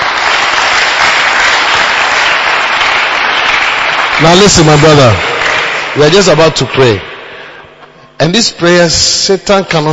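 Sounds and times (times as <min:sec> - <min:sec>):
audience clapping: 0:00.0 - 0:07.2
speech: 0:04.2 - 0:05.3, 0:06.0 - 0:07.1, 0:08.2 - 0:09.9.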